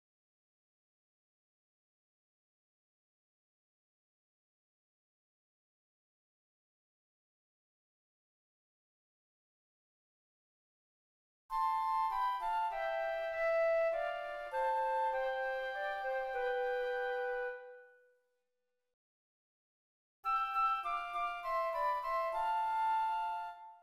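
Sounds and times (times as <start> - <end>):
flutes: 11.5 - 18.2, 20.2 - 23.8.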